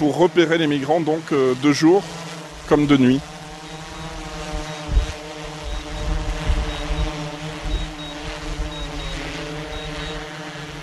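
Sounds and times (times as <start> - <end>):
speech: 0.0 - 3.3
surveillance drone hovering overhead: 2.4 - 10.8
low thumps: 3.8 - 10.2.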